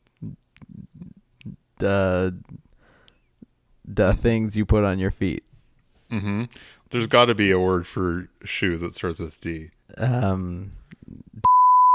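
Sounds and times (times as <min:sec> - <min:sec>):
speech: 0:01.8 - 0:02.6, 0:04.0 - 0:05.5, 0:06.1 - 0:10.8
censor bleep over a swear word: 0:11.4 - 0:11.9.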